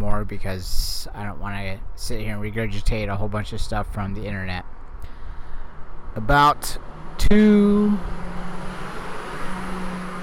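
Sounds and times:
speech: 0:00.2 - 0:04.8, 0:06.1 - 0:08.2
bus passing: 0:04.7 - 0:10.2.

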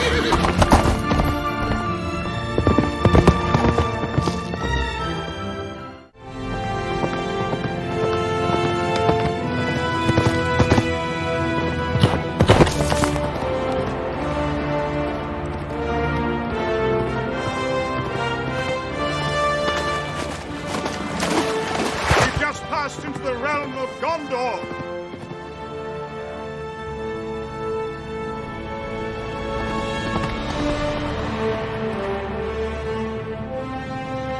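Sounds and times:
horse Shadowfax neighing: 0:00.0 - 0:01.6
horse Shadowfax galloping hooves: 0:00.0 - 0:34.3
loud orchestral music score: 0:00.0 - 0:34.3.

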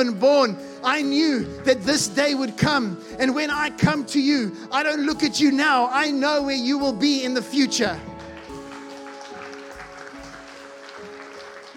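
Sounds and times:
speech: 0:00.0 - 0:08.2
audience clapping: 0:07.9 - 0:11.7.

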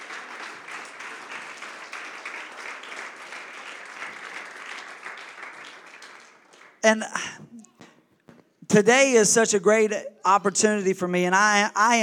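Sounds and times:
audience clapping: 0:00.0 - 0:07.3
speech: 0:06.8 - 0:07.4, 0:08.7 - 0:12.0.

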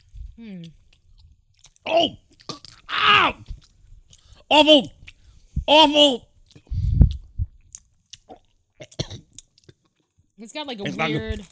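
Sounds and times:
speech: 0:00.4 - 0:00.8, 0:01.9 - 0:02.2, 0:03.0 - 0:03.5, 0:04.5 - 0:05.0, 0:05.7 - 0:06.3, 0:10.4 - 0:11.5
chewing a blackberry-flavoured gummy: 0:00.6 - 0:04.4, 0:06.4 - 0:10.2, 0:10.9 - 0:11.5.

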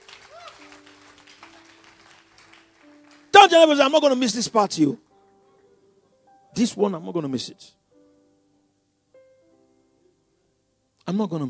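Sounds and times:
audience clapping: 0:00.0 - 0:03.8
speech: 0:03.4 - 0:05.1, 0:06.6 - 0:07.8, 0:11.1 - 0:11.4.

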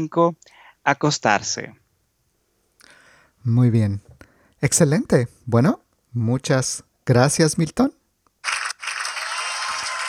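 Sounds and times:
speech: 0:00.0 - 0:01.8, 0:03.4 - 0:08.0
audience applause: 0:09.2 - 0:10.0.

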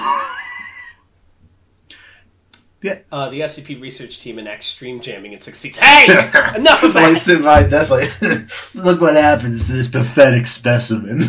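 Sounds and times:
deep breath: 0:01.9 - 0:02.3, 0:08.5 - 0:08.8
speech: 0:02.8 - 0:11.2
laughter: 0:05.9 - 0:09.7, 0:11.0 - 0:11.2.

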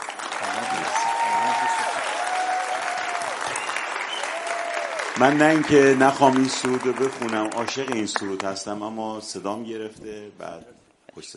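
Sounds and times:
congregation clapping a preacher at a church gathering: 0:00.0 - 0:08.8
speech: 0:05.2 - 0:11.3.

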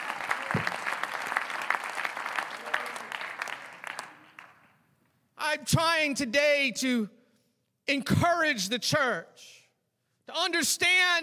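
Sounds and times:
audience applause: 0:00.0 - 0:04.7
speech: 0:05.5 - 0:07.2, 0:07.9 - 0:09.6, 0:10.3 - 0:11.2.

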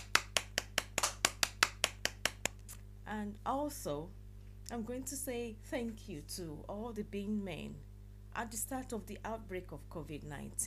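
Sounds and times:
hand clapping: 0:00.0 - 0:02.8
speech: 0:03.1 - 0:10.6.

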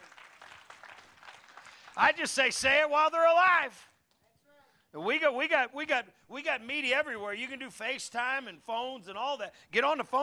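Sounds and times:
audience clapping: 0:00.0 - 0:02.5
speech: 0:02.0 - 0:03.9, 0:04.9 - 0:10.2.

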